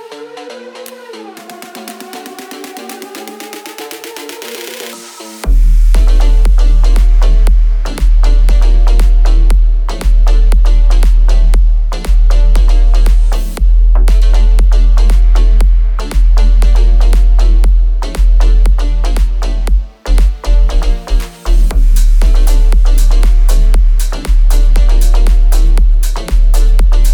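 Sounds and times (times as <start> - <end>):
37, 39 and 41 Hz low bass tone: 5.4 - 27.1.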